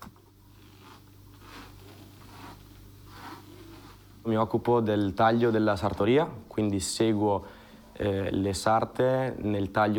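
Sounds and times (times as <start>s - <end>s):
cutting patterns handled in a fencing-uniform tailoring workshop: 0.5s - 4.2s
speech: 4.2s - 9.9s.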